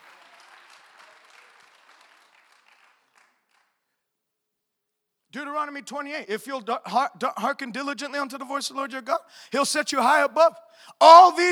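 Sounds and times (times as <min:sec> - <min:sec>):
audience clapping: 0:00.0 - 0:04.0
speech: 0:05.4 - 0:11.5.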